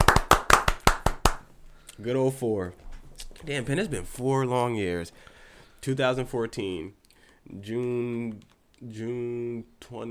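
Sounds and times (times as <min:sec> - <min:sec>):
hand clapping: 0:00.0 - 0:01.5
speech: 0:02.0 - 0:02.8, 0:03.4 - 0:10.0.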